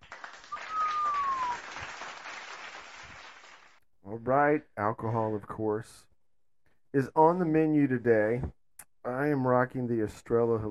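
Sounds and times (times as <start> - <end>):
round of applause: 0.0 - 3.8
speech: 4.1 - 6.1, 6.9 - 10.6.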